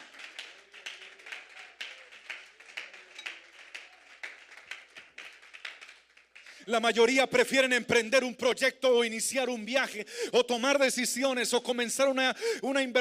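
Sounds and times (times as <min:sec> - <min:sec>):
crowd clapping: 0:00.0 - 0:07.2
speech: 0:06.7 - 0:12.9.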